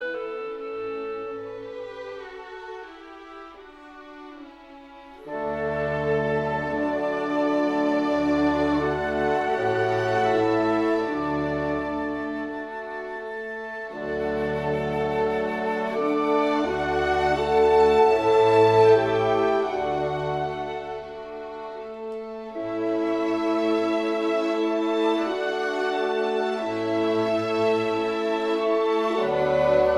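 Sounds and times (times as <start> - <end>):
clarinet adagio: 0.0 - 29.9.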